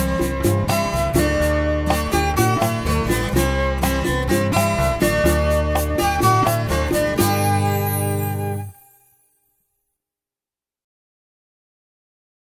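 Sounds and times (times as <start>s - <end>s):
commercial: 0.0s - 9.4s.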